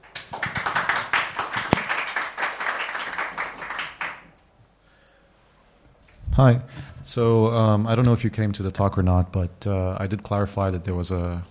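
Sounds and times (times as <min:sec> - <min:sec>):
audience applause: 0:00.0 - 0:04.3
speech: 0:06.4 - 0:11.4.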